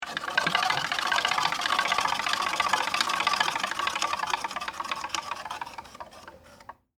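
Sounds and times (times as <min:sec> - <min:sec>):
wood clicks: 0:00.0 - 0:06.8
wooden machine spinning: 0:00.0 - 0:06.8.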